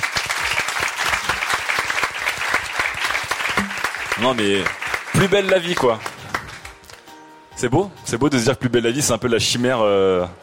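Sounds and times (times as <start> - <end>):
crowd clapping: 0.0 - 7.1
speech: 4.2 - 6.1, 7.6 - 10.4.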